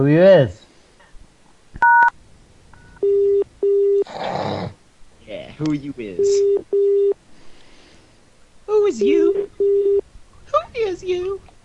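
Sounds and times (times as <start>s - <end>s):
speech: 0.0s - 0.6s, 5.6s - 7.1s, 8.8s - 10.0s, 10.8s - 11.5s
long steady lower-pitched beeps: 1.8s - 4.0s, 6.1s - 7.2s, 9.4s - 10.0s
telephone keypad hash key dual-tone beep: 3.0s - 4.0s, 6.2s - 7.2s, 9.6s - 10.0s.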